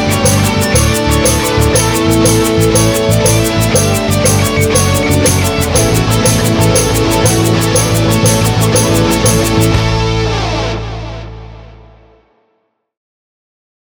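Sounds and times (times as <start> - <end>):
ternary rhythm loop at 120: 0.0 - 10.1.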